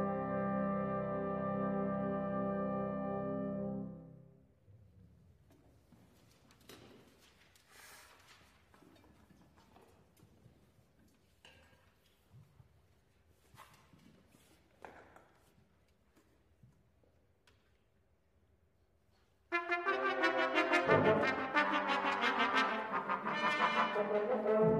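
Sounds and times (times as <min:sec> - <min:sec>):
simulated brass ensemble instrumental: 0:00.0 - 0:04.3, 0:19.5 - 0:24.7.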